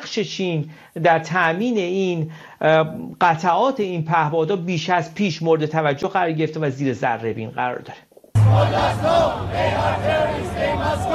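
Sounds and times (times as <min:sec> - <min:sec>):
speech: 0:00.1 - 0:11.1
crowd chanting in unison at a rally: 0:08.4 - 0:11.1
low hum: 0:08.4 - 0:11.1.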